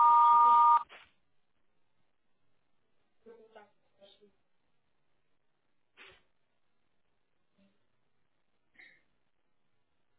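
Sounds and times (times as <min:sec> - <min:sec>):
voicemail beep tone: 0:00.0 - 0:00.8.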